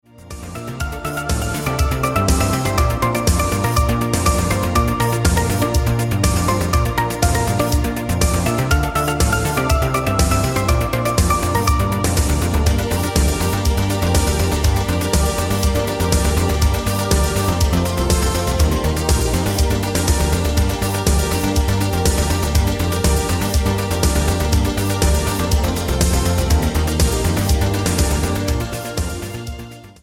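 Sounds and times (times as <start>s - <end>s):
disco orchestra music: 0.1s - 30.0s.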